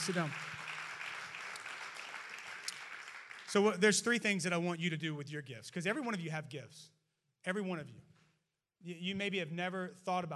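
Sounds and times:
speech: 0.0 - 0.6, 3.5 - 8.1, 8.8 - 10.3
audience clapping hands: 0.0 - 4.2.

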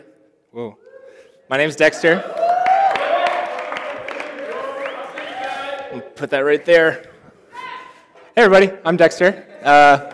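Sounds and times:
speech: 0.5 - 0.8, 1.5 - 2.4, 6.2 - 7.1, 8.4 - 10.1
audience clapping: 2.2 - 6.1.

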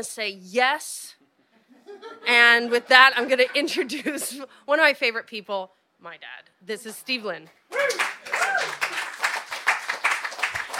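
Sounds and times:
speech: 0.0 - 1.2, 1.9 - 8.0
audience applause: 7.7 - 10.7.

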